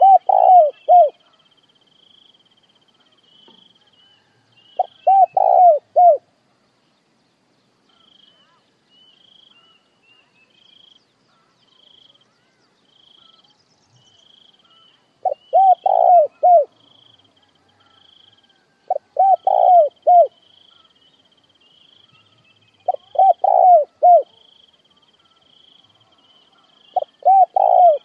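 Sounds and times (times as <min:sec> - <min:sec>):
spotted dove cooing: 0:00.0 - 0:01.2, 0:04.8 - 0:06.3, 0:15.2 - 0:16.8, 0:17.7 - 0:20.4, 0:22.2 - 0:24.5, 0:26.9 - 0:28.0.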